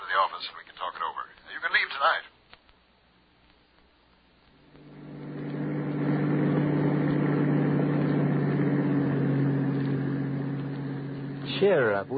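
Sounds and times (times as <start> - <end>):
speech: 0.2 - 2.4, 11.6 - 12.1
bus engine idling: 4.7 - 12.1.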